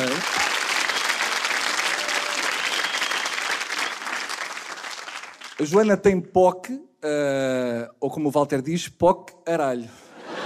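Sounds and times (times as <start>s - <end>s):
crowd applause: 0.0s - 5.8s
speech: 5.6s - 10.0s.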